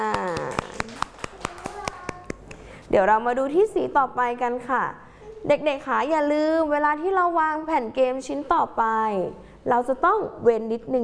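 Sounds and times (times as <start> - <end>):
children clapping in a classroom for a classmate: 0.0 - 2.6
speech: 2.9 - 11.0.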